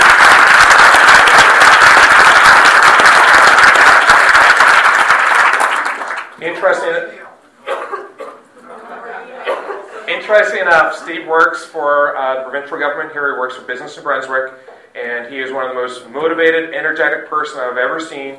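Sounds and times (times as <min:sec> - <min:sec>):
audience applause: 0:00.0 - 0:06.4
speech: 0:06.6 - 0:07.2, 0:10.3 - 0:18.3
laughter: 0:08.0 - 0:10.3.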